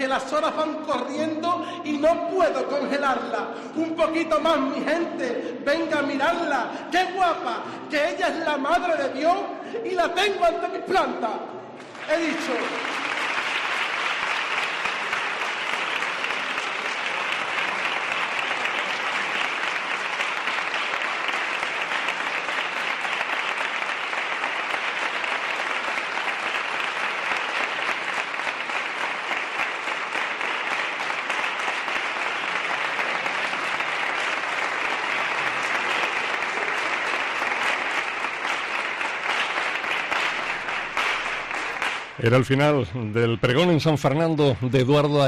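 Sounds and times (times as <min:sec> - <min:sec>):
speech: 0:00.1 - 0:13.0, 0:42.2 - 0:45.2
audience ovation applause: 0:11.8 - 0:42.8.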